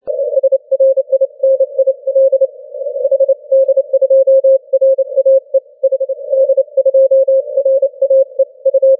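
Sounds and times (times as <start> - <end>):
80 m band continuous wave radio signal: 0.1 - 8.9.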